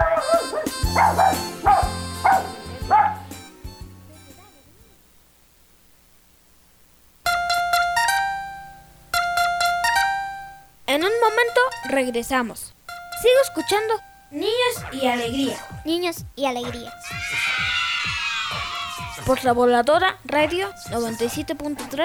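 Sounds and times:
small dog yapping: 0.0s - 3.3s, 17.0s - 19.3s
bright backing music: 0.0s - 5.0s, 7.2s - 17.2s, 18.7s - 22.0s
speech: 10.9s - 17.2s, 19.2s - 22.0s.

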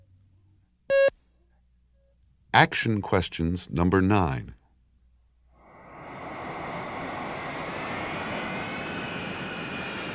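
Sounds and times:
speech: 2.6s - 4.6s
airplane engine: 5.6s - 10.1s.

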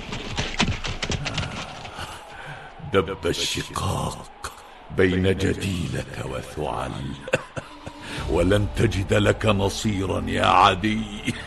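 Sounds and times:
horse hooves as a rider dismounts in a radio drama: 0.0s - 2.4s
speech: 2.9s - 7.4s, 8.3s - 11.4s
laughter: 4.3s - 10.1s.

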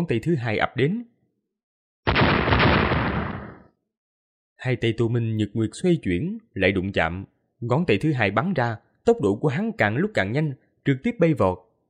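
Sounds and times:
speech: 0.0s - 1.1s, 4.6s - 11.7s
loud echoing explosion with rumbling roar: 2.1s - 3.7s.

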